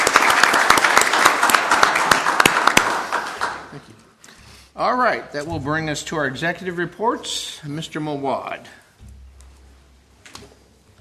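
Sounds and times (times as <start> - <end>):
audience applause: 0.0 - 4.0
speech: 4.8 - 8.8.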